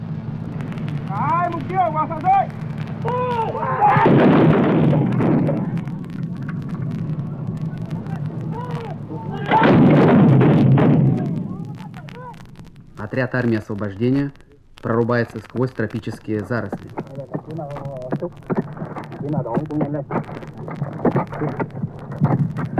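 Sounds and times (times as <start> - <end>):
artillery battery firing: 0.7 - 12.8
speech: 1.1 - 5.7, 13.1 - 22.7.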